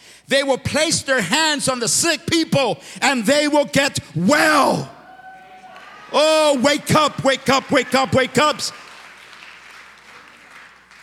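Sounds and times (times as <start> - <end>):
speech: 0.3 - 5.0, 6.1 - 8.8
crowd applause: 5.2 - 11.0.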